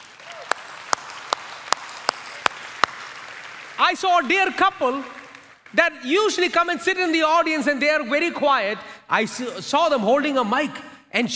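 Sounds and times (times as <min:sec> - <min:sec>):
rhythmic clapping in unison for church cell group leaders: 0:00.0 - 0:05.8
speech: 0:03.8 - 0:11.3.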